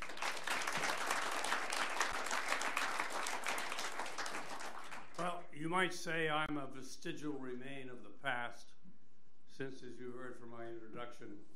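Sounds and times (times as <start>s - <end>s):
audience at a talk applauding to welcome the speaker: 0.0s - 5.3s
speech: 5.6s - 8.8s, 9.6s - 11.5s.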